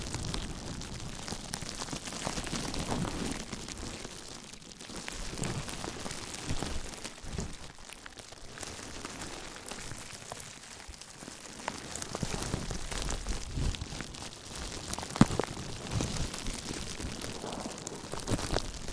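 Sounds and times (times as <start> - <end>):
slow gentle soft crinkling: 0.0 - 18.9.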